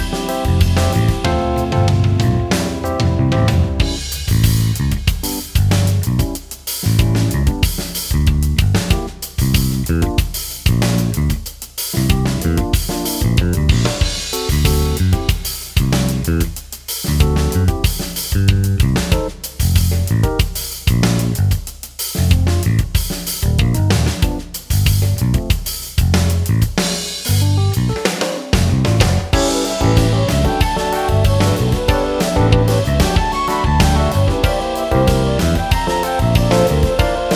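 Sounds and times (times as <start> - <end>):
creative rock backing track: 0.0 - 37.3.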